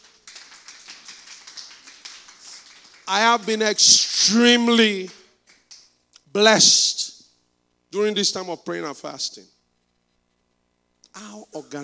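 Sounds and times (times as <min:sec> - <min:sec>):
audience applause: 0:00.0 - 0:05.8
speech: 0:03.1 - 0:05.2, 0:06.4 - 0:07.0, 0:07.9 - 0:09.6, 0:11.2 - 0:11.8.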